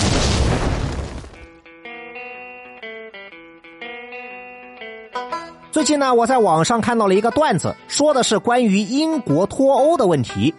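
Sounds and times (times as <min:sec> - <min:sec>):
explosion: 0:00.0 - 0:01.6
speech: 0:05.8 - 0:10.5.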